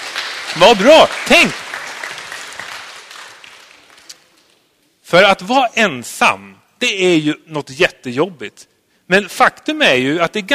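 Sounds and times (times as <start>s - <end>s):
audience applause: 0.0s - 4.3s
speech: 0.6s - 1.6s, 5.1s - 10.5s.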